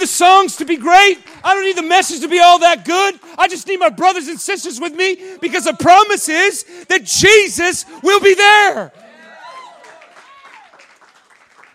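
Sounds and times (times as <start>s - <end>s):
audience clapping: 0.0s - 3.6s, 8.9s - 11.7s
speech: 0.0s - 9.0s.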